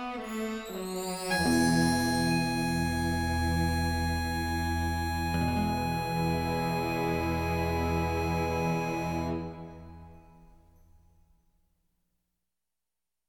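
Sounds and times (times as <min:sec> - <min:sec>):
harp: 0:00.2 - 0:10.8.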